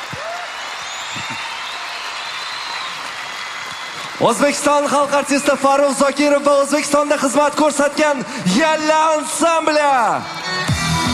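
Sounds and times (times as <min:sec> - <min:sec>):
audience applause at a concert: 0:00.0 - 0:06.1
speech: 0:01.2 - 0:01.5, 0:04.2 - 0:10.6.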